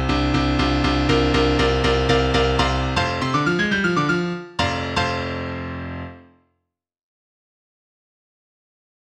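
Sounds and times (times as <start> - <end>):
piano piece: 0.0 - 6.5.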